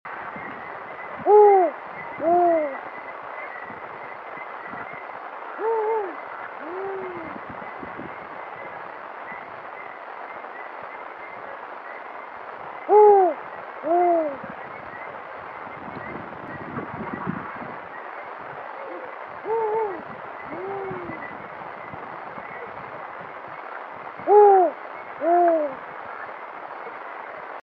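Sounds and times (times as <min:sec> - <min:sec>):
soft constant hiss: 0:00.3 - 0:27.6
Spotted eagle-owl hooting: 0:01.2 - 0:03.5, 0:05.5 - 0:07.4, 0:12.8 - 0:14.5, 0:18.7 - 0:21.3, 0:24.2 - 0:25.8.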